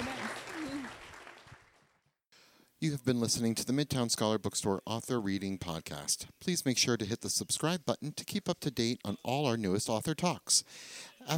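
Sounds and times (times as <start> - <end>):
audience applause: 0.0 - 2.0
speech: 2.8 - 11.3.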